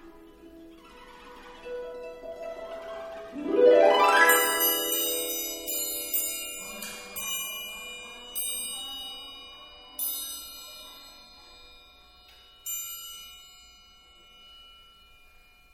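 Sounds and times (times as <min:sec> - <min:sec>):
music piece: 0:00.0 - 0:09.6.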